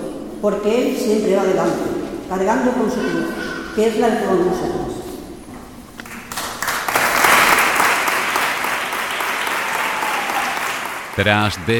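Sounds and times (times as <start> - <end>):
speech: 0.4 - 5.0, 11.2 - 11.7
audience applauding: 6.0 - 11.7.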